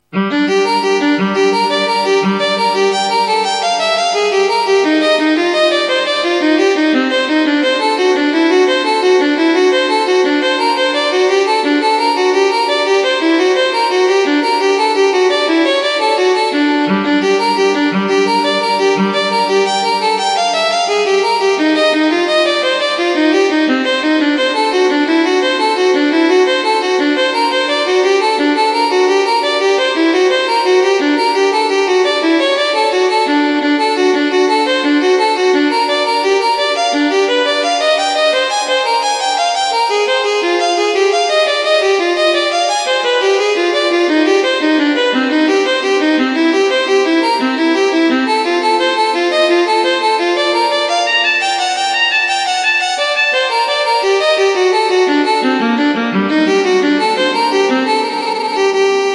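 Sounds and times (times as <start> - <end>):
prelude in G minor: 0.0 - 59.1.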